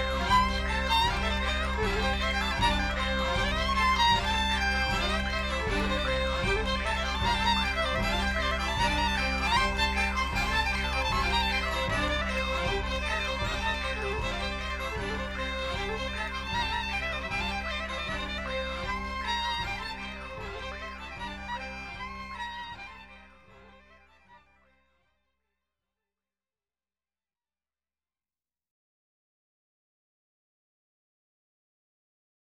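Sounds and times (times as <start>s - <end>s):
jig tune: 0.0s - 22.8s.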